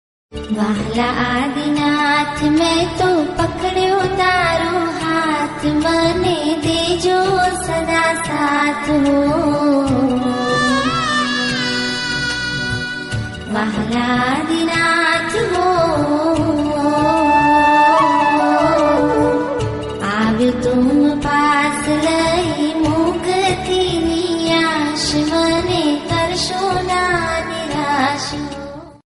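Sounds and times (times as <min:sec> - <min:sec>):
Bhakti devotional music: 0:00.3 - 0:29.0.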